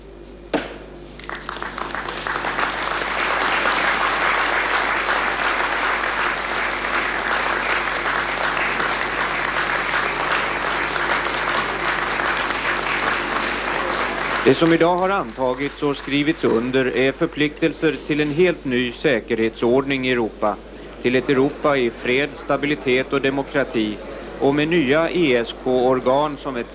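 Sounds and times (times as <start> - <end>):
applause after Paris declaration adopted: 1.2 - 17.2
speech: 14.5 - 26.7.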